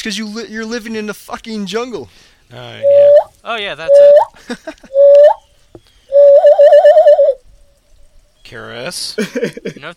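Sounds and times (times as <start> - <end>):
speech: 0.0 - 5.4, 8.5 - 9.9
person whistling imitation bird calls: 2.8 - 3.3, 3.9 - 7.4
laughter: 4.4 - 5.0, 9.2 - 9.9.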